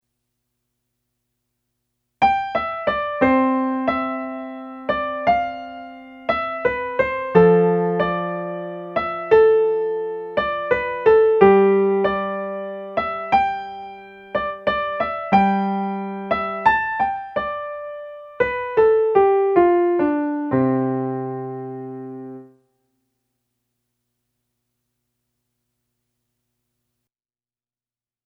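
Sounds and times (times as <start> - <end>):
piano concerto music: 2.3 - 22.5.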